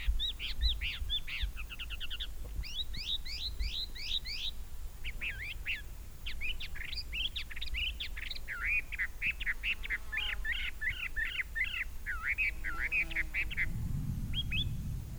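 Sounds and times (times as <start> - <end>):
Chinese hwamei Garrulax canorus singing: 0.0 - 15.1.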